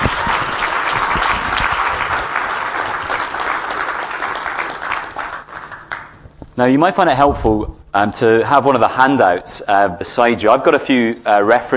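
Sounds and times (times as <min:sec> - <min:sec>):
audience applause: 0:00.0 - 0:06.2
speech: 0:06.6 - 0:11.7.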